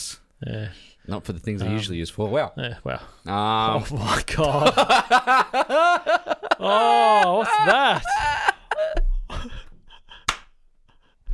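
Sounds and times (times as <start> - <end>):
speech: 0.0 - 8.3
laughter: 4.4 - 10.3
single hand clap: 10.3 - 10.5.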